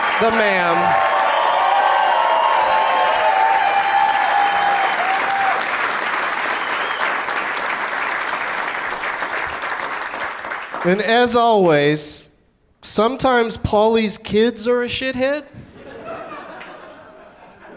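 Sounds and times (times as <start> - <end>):
audience whooping and cheering: 0.0 - 7.4
audience applauding: 0.0 - 11.1
speech: 0.2 - 1.1, 10.8 - 12.2, 12.8 - 15.6
laughter: 15.6 - 17.7.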